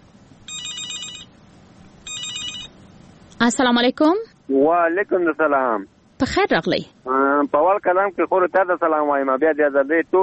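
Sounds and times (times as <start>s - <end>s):
hiss: 0.0s - 10.2s
telephone ringing for a listener's call-in: 0.5s - 1.3s, 2.0s - 2.8s
speech: 3.4s - 10.2s.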